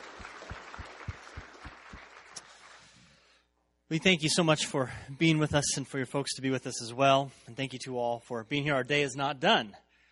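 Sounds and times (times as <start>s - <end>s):
audience applause: 0.0s - 3.0s
speech: 3.9s - 9.8s.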